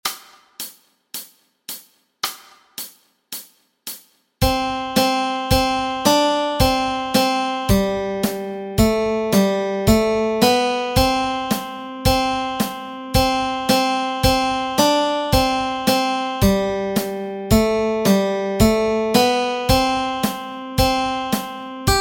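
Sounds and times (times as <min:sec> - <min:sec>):
melody: 0:04.4 - 0:22.0.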